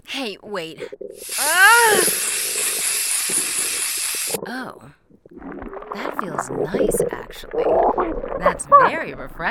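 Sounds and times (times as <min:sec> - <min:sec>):
speech: 0:00.2 - 0:02.4, 0:04.3 - 0:05.0, 0:06.0 - 0:09.4
spray hissing: 0:01.2 - 0:04.4.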